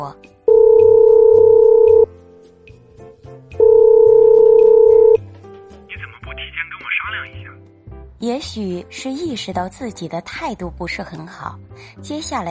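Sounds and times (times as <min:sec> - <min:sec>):
speech: 0:00.0 - 0:00.3, 0:08.2 - 0:12.4
telephone dial tone: 0:00.5 - 0:02.1, 0:03.6 - 0:05.2.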